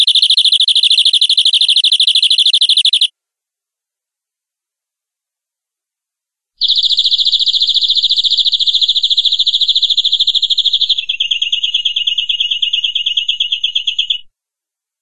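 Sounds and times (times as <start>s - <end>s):
domestic canary giving long rolling song: 0.0s - 3.1s, 6.6s - 14.3s.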